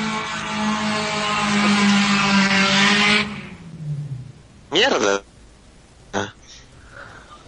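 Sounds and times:
passing vehicle: 0.0 - 4.6
speech: 4.8 - 5.3.

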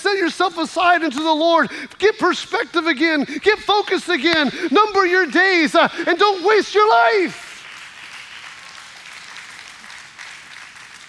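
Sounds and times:
speech: 0.2 - 7.4
audience applause: 6.9 - 11.0.

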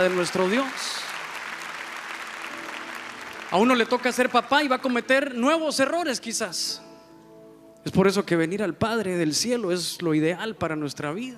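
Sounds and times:
speech: 0.0 - 1.0, 3.5 - 6.9, 7.8 - 11.3
audience applauding: 0.0 - 5.3.

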